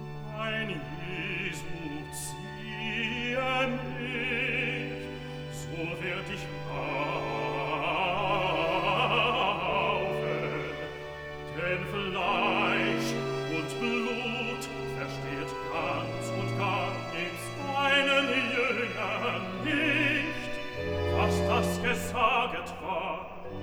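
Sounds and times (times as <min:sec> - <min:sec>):
bass singing cantata recitative: 0:00.2 - 0:23.5.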